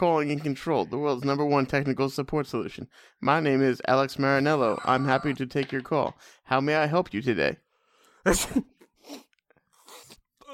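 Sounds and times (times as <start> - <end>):
speech: 0.0 - 7.6, 8.2 - 9.2
laughter: 4.4 - 6.3
loud sneeze: 8.3 - 8.8.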